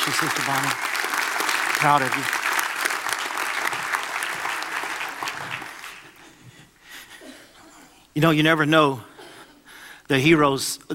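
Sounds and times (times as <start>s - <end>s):
audience applause: 0.0s - 6.3s
speech: 0.1s - 1.0s, 1.8s - 2.4s, 8.2s - 9.1s, 10.1s - 10.9s.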